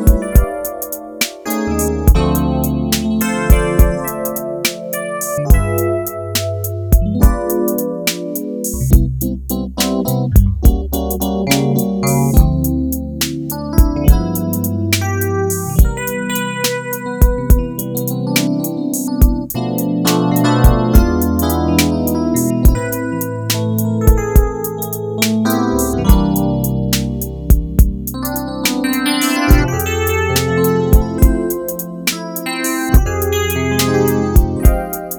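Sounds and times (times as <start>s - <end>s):
VPM synth piano on a Korg Radias-R: 0.0s - 35.1s.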